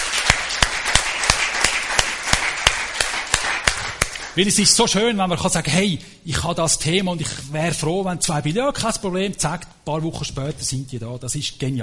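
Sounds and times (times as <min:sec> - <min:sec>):
audience applause: 0:00.0 - 0:04.4
speech: 0:04.4 - 0:11.8.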